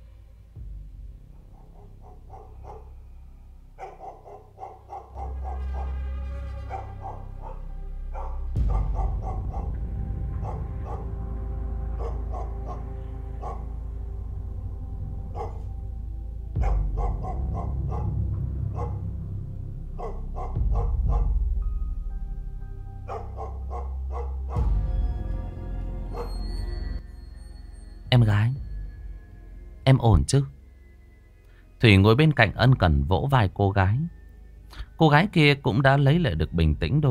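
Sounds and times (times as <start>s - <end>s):
dogs barking intermittently in a village at night: 1.2s - 21.9s, 23.0s - 27.9s
speech: 29.9s - 30.6s, 31.8s - 37.0s.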